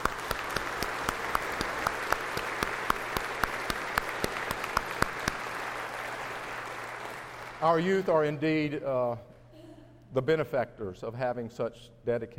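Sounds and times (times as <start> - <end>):
crowd applause: 0.0 - 8.4
speech: 7.6 - 9.3, 10.1 - 12.3.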